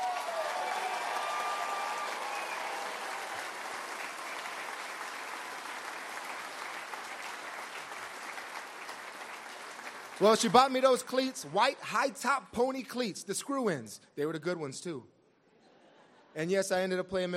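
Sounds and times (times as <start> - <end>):
audience applause: 0.0 - 11.8
speech: 10.2 - 15.2, 16.4 - 17.3.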